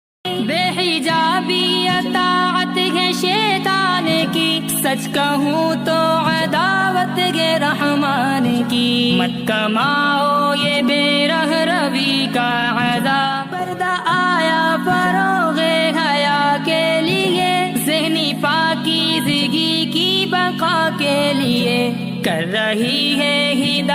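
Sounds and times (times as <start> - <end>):
Islamic naat ringtone: 0.3 - 23.9.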